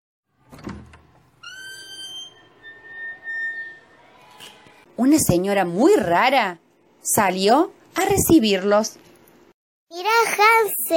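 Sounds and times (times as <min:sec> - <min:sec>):
door creaking open: 0:00.4 - 0:04.9
speech: 0:05.0 - 0:09.0, 0:10.5 - 0:10.9.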